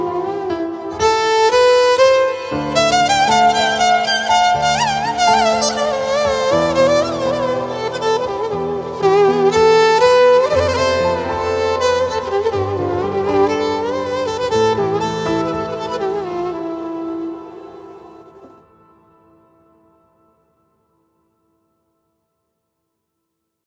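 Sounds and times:
sad Arabic violin music: 0:00.0 - 0:18.8.

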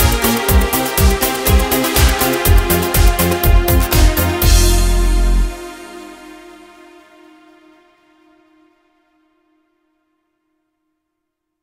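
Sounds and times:
italo disco mix on Korg Pa5x keyboard: 0:00.0 - 0:07.7.

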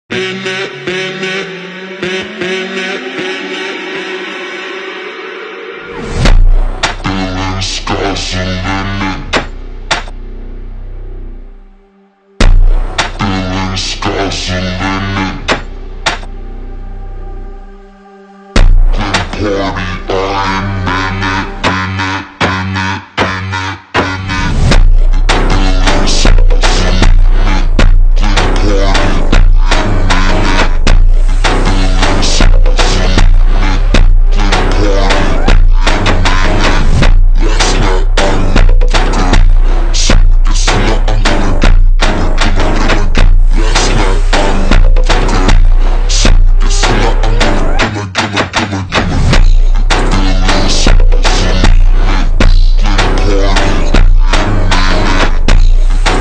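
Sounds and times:
Brazilian phonk ultra slowed with reverb: 0:00.1 - 0:47.8, 0:49.2 - 0:56.2.

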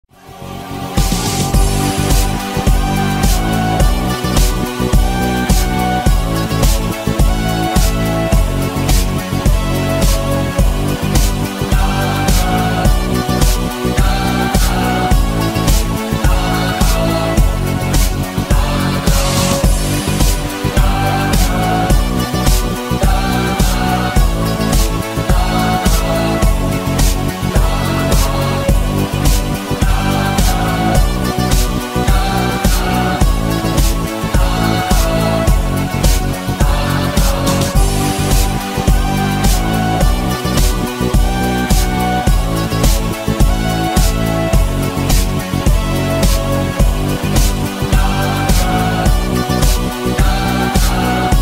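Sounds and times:
sped-up instrumental music: 0:00.1 - 0:51.4.

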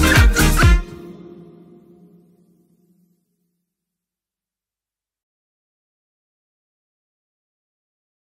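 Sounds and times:
club anthem: 0:00.0 - 0:02.3.

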